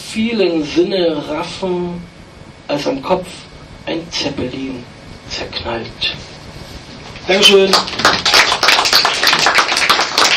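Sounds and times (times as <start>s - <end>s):
speech: 0.1s - 2.1s, 2.7s - 6.3s, 7.3s - 8.3s
audience applause after a performance: 7.7s - 10.3s.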